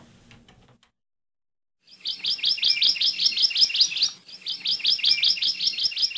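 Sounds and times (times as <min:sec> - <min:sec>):
Hawaii Amakihi honeycreeper singing high trills in Ohia forest: 0:01.8 - 0:06.1.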